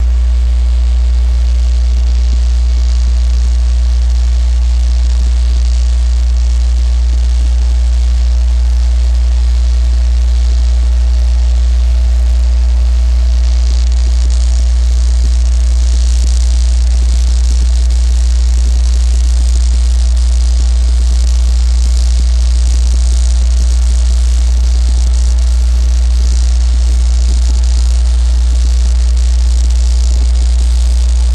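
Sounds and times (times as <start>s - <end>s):
dam power plant buzz and hums: 0.0s - 31.3s.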